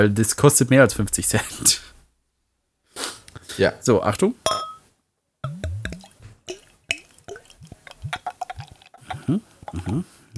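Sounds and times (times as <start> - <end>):
speech: 0.0 - 2.0, 3.6 - 4.6, 9.3 - 10.1
beer being poured into a glass: 5.4 - 10.0.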